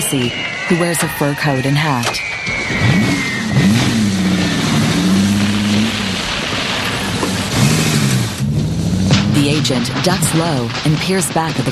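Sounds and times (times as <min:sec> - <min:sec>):
speech: 0:00.1 - 0:03.0, 0:09.4 - 0:11.7
car engine humming and revving as the car backs up: 0:02.7 - 0:10.8.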